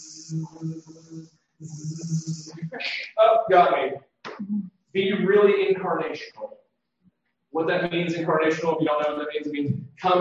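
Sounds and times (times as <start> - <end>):
bee buzzing near the microphone: 0.0 - 2.7
speech: 0.0 - 6.6, 7.5 - 10.1.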